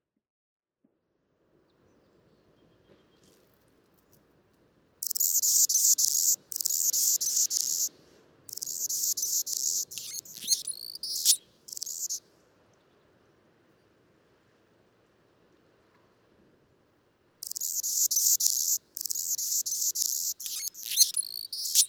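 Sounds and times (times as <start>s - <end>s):
Anna's hummingbird buzzing song: 5.0s - 7.9s, 8.5s - 12.2s, 17.4s - 21.8s.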